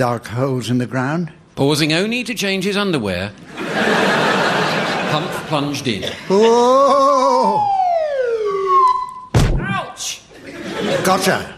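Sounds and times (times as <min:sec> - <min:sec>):
speech: 0:00.0 - 0:04.2, 0:05.1 - 0:07.7, 0:10.9 - 0:11.5
laughter: 0:03.5 - 0:07.6, 0:10.3 - 0:11.5
swanee whistle: 0:07.8 - 0:09.4.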